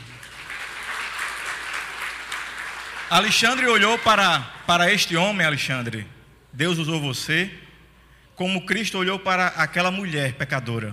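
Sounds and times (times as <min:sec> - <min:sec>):
applause: 0:00.0 - 0:04.7
speech: 0:03.1 - 0:07.6, 0:08.4 - 0:10.9.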